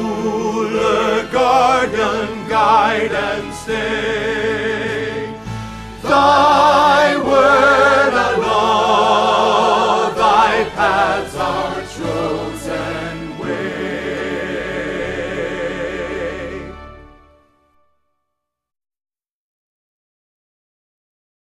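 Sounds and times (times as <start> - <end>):
tenor singing a hymn for choir rehearsal: 0.0 - 17.0.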